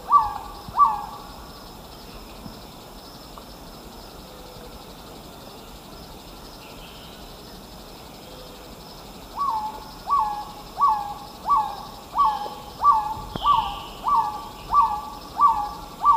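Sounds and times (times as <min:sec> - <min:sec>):
Black-tailed Trogon singing mellow hooted notes: 0:00.0 - 0:01.2, 0:09.4 - 0:16.1.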